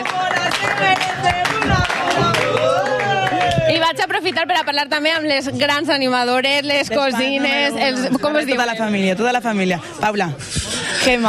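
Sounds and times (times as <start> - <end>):
crowd clapping and cheering: 0.0 - 5.1
speech: 3.9 - 11.2.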